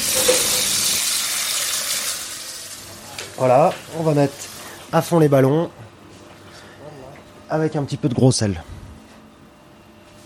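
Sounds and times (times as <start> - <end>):
water running from a tap into a saucepan: 0.0 - 4.8
speech: 3.4 - 5.8, 7.5 - 8.8.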